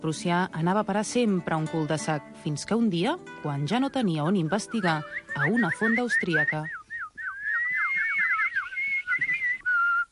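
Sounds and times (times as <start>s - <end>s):
speech: 0.0s - 6.8s
caged bird singing a whistled melody: 3.9s - 10.0s.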